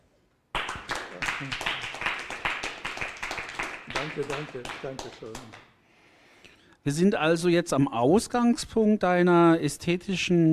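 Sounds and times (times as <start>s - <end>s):
audience applause: 0.5s - 5.6s
speech: 1.4s - 1.7s, 4.0s - 5.6s, 6.8s - 10.5s.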